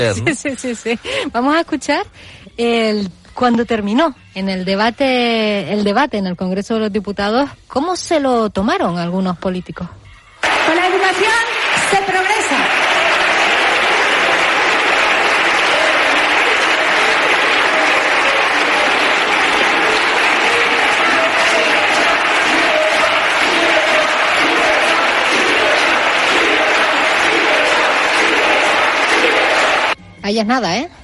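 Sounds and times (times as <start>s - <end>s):
speech: 0.0s - 12.7s, 30.3s - 31.0s
parliament applause: 10.4s - 30.0s.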